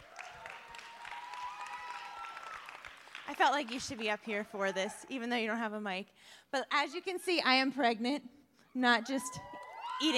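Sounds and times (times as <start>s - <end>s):
audience clapping: 0.0s - 4.4s
speech: 3.3s - 10.1s.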